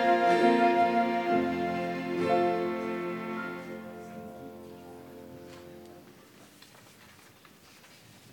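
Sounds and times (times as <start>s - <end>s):
orchestra playing: 0.0s - 4.7s.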